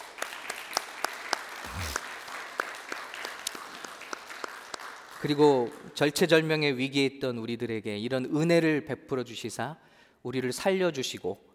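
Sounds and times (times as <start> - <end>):
audience applause: 0.0 - 5.5
speech: 5.2 - 11.5.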